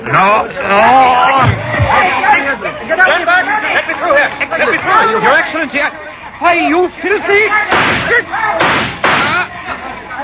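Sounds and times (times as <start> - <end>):
loud agitated voices talking: 0.0 - 10.2
speech: 0.1 - 8.7
gunshots: 7.7 - 9.5.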